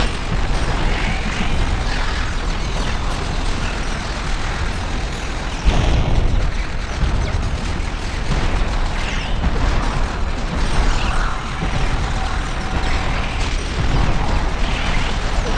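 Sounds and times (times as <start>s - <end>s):
frenzied firing loop: 0.0s - 15.5s.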